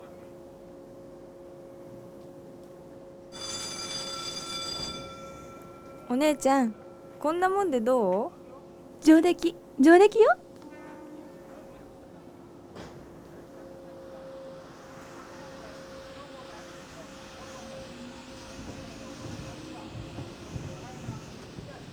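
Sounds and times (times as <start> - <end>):
train passing by: 3.4 - 8.3, 12.3 - 21.9
speech: 6.1 - 8.4, 9.0 - 10.4.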